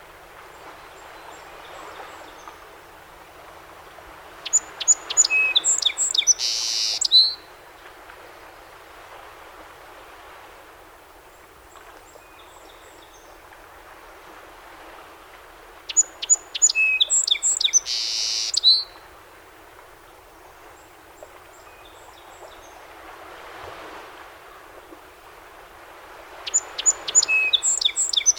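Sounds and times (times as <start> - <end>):
song sparrow song: 4.4 - 7.5, 15.9 - 19.0, 26.5 - 28.3.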